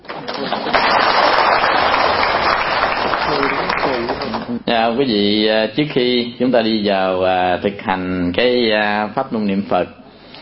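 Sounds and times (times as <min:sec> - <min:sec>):
audience applause at a Buddhist dharma talk: 0:00.0 - 0:04.5
speech: 0:04.7 - 0:10.0.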